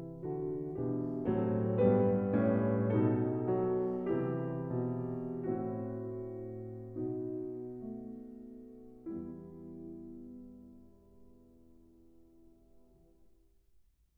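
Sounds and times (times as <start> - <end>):
cello suite prelude in E-flat major: 0.0 - 8.1.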